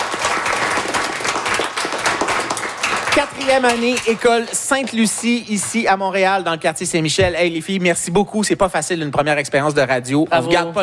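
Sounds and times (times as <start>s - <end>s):
group applauding loudly: 0.0s - 6.4s
speech: 3.2s - 10.8s.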